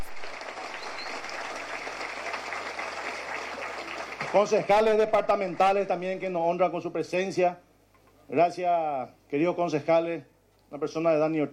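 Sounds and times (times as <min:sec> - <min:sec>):
audience applause: 0:00.0 - 0:05.9
speech: 0:04.3 - 0:07.6, 0:08.3 - 0:11.5.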